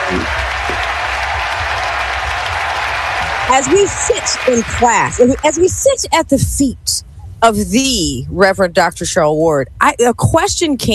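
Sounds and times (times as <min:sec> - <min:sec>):
audience applause: 0:00.0 - 0:05.7
speech: 0:03.5 - 0:10.9.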